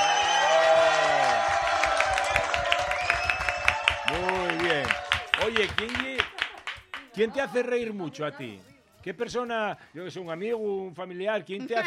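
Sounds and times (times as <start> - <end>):
audience applause: 0.0 - 7.1
speech: 7.2 - 11.8.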